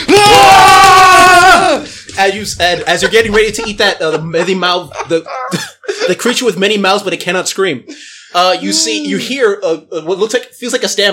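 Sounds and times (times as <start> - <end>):
group roaring in unison: 0.0 - 1.9
laughter: 1.6 - 6.6
speech: 2.2 - 11.1.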